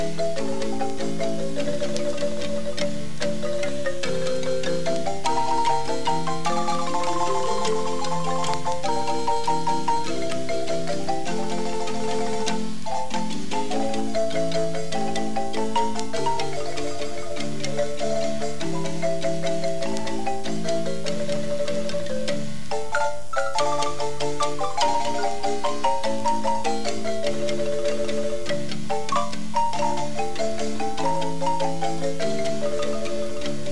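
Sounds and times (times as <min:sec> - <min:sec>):
marimba playing Guanacaste music: 0:00.0 - 0:33.7.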